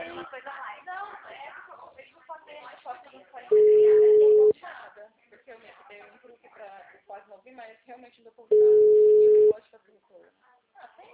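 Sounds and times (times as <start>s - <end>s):
ringback tone of an outgoing telephone call: 3.5s - 4.5s, 8.5s - 9.5s.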